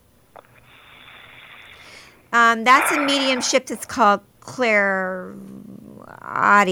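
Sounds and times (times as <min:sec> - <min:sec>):
deep breath: 0:00.4 - 0:03.6
speech: 0:02.3 - 0:05.5, 0:06.3 - 0:06.7.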